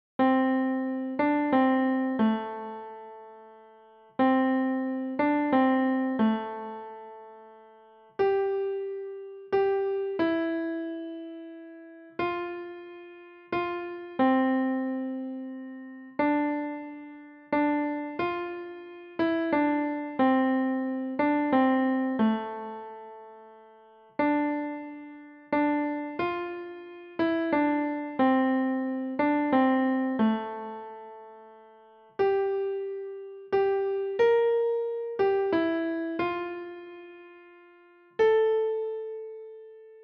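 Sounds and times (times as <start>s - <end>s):
piano: 0.0s - 40.0s.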